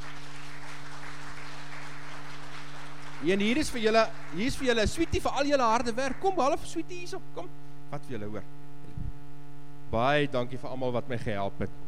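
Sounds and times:
group clapping hands: 0.0s - 6.9s
speech: 3.2s - 8.6s, 9.9s - 11.8s.

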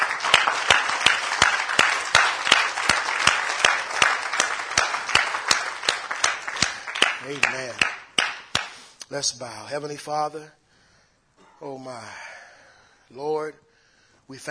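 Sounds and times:
audience hand clapping in praise: 0.0s - 8.9s
speech: 9.1s - 10.6s, 11.6s - 12.2s, 13.1s - 13.7s, 14.3s - 14.5s.

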